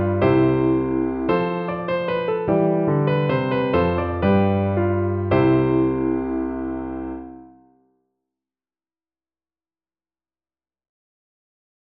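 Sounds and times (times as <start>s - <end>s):
piano playing a minuet: 0.0s - 7.8s.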